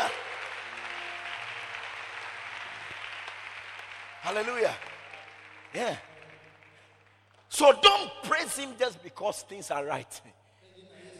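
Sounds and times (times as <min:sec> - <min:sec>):
crowd clapping: 0:00.0 - 0:08.9
speech: 0:04.2 - 0:04.9, 0:05.7 - 0:06.1, 0:07.5 - 0:10.4.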